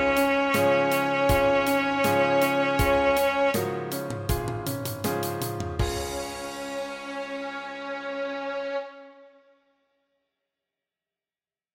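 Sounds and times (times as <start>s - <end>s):
B-flat scale being played: 0.0s - 9.1s.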